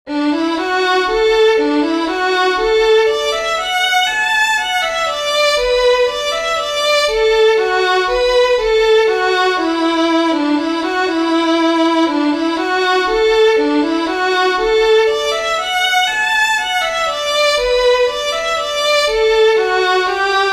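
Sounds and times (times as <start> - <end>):
fiddlers playing a waltz: 0.1 - 20.5.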